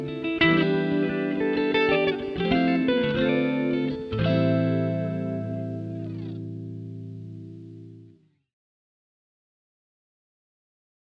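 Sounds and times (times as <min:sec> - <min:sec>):
guitar loop in A minor: 0:00.0 - 0:08.4.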